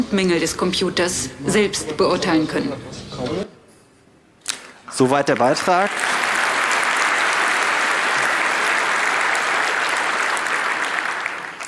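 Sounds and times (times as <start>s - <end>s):
speech: 0.0s - 3.5s, 5.0s - 6.1s
audience applause: 5.1s - 11.6s.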